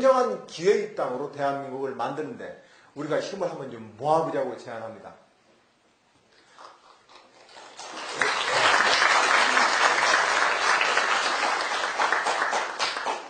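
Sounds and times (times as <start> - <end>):
speech: 0.0 - 5.2
students applauding in a university lecture room: 7.5 - 13.2.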